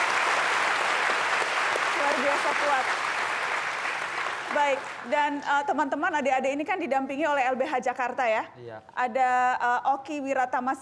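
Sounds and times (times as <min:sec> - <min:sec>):
audience applause: 0:00.0 - 0:05.5
speech: 0:02.2 - 0:03.1, 0:04.5 - 0:10.8.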